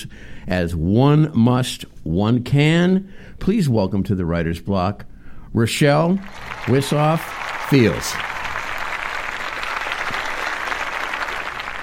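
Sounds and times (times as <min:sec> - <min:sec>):
speech: 0:00.0 - 0:08.3
audience applause: 0:06.2 - 0:11.8.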